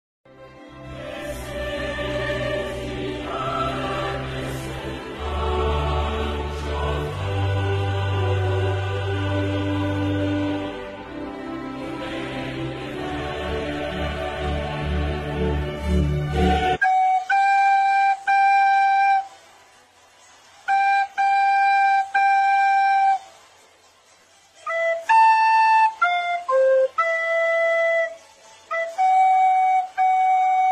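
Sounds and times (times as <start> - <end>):
flute version music: 0.3 - 30.7.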